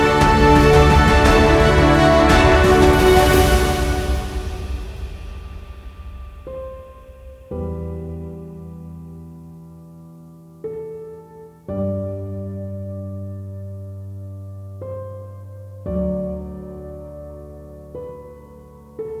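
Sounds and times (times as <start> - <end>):
epic inspired music: 0.0 - 7.9.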